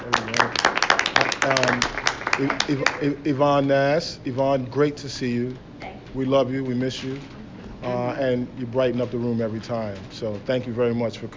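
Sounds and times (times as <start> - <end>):
audience clapping: 0.0 - 3.7
speech: 2.4 - 11.3.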